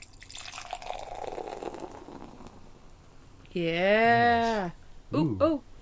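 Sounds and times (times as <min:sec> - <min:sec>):
beer pouring into a glass: 0:00.0 - 0:02.7
speech: 0:03.6 - 0:05.6.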